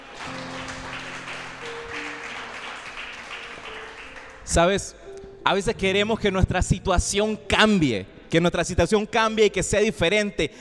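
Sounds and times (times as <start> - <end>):
audience applause: 0.0 - 4.6
speech: 4.5 - 10.5.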